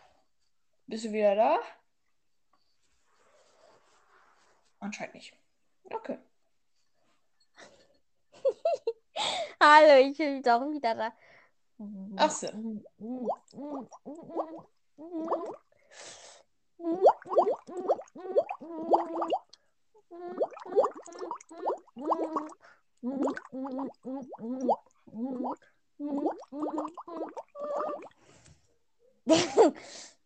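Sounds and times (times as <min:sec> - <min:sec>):
speech: 0:00.9 - 0:01.8, 0:04.8 - 0:06.3, 0:08.4 - 0:11.2, 0:11.8 - 0:16.2, 0:16.8 - 0:19.4, 0:20.1 - 0:28.2, 0:29.3 - 0:30.1
simple tune bubbled through a straw into water: 0:12.8 - 0:15.6, 0:16.8 - 0:19.5, 0:20.2 - 0:28.2.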